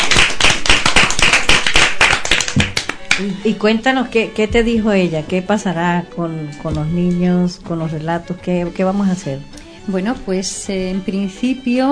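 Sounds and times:
applause: 0.0 - 3.2
speech: 3.2 - 11.9.

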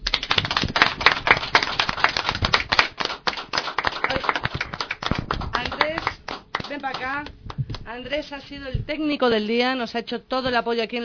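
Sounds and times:
audience applause: 0.0 - 7.1
speech: 8.0 - 11.0.

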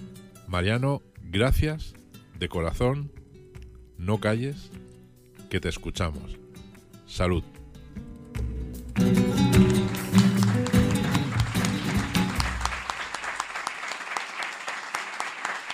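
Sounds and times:
speech: 0.5 - 3.2, 4.0 - 4.8, 5.5 - 6.4, 7.1 - 7.5
audience applause: 9.3 - 15.7.

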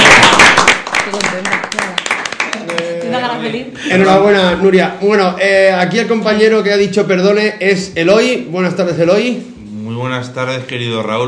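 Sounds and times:
applause: 0.0 - 3.0
speech: 3.5 - 11.2.

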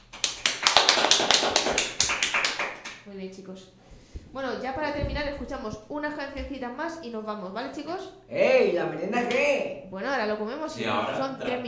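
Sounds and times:
applause from a small group: 0.0 - 3.0
speech: 3.1 - 11.6.

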